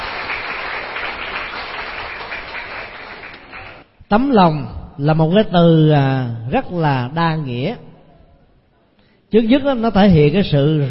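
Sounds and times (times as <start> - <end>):
children applauding: 0.0 - 3.9
speech: 4.1 - 7.9, 9.3 - 10.8.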